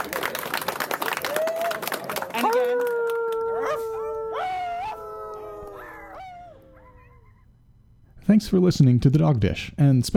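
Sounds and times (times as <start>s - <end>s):
audience round of applause: 0.0s - 5.8s
speech: 8.3s - 10.1s.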